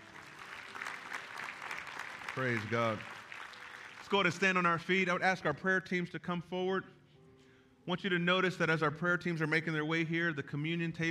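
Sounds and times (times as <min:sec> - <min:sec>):
audience clapping hands: 0:00.0 - 0:04.8
speech: 0:02.4 - 0:03.2, 0:04.1 - 0:07.0, 0:07.9 - 0:11.0.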